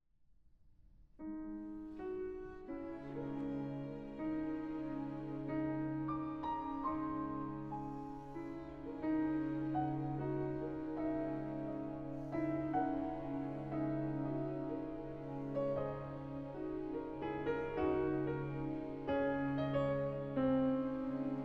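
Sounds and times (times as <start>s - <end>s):
piano concerto: 1.2s - 21.4s.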